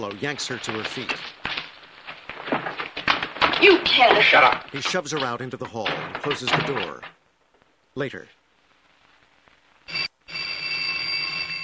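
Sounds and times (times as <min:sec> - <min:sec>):
speech: 0:00.0 - 0:01.4, 0:03.6 - 0:07.2, 0:08.0 - 0:08.4
telephone ringing with a bright metallic buzz: 0:09.9 - 0:11.6.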